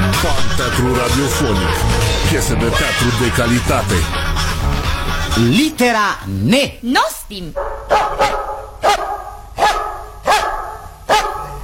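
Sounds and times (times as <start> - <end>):
speech: 0.6 - 9.0
dog barking: 7.6 - 11.6.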